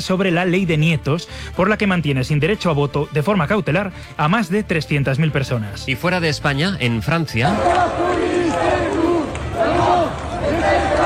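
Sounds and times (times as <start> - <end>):
speech: 0.0 - 8.8
protest crowd in Lyon, France shouting and chanting against lack of investment in education: 7.4 - 11.0.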